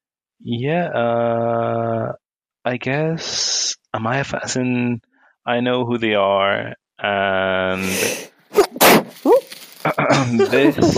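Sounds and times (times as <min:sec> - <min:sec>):
speech: 0:00.4 - 0:10.9
sneeze: 0:08.5 - 0:09.4
laughter: 0:09.9 - 0:10.9.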